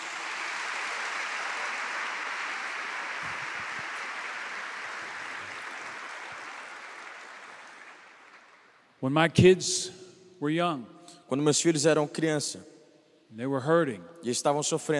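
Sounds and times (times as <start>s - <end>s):
audience clapping hands: 0.0s - 9.0s
speech: 9.0s - 12.7s, 13.3s - 14.9s.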